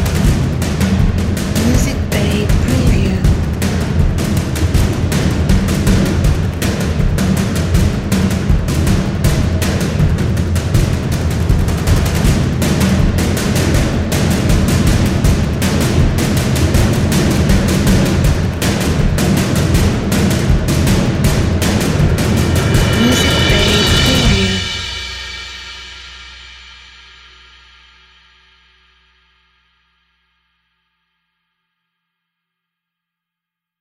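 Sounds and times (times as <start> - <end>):
cinematic action chase drums: 0.0 - 25.2.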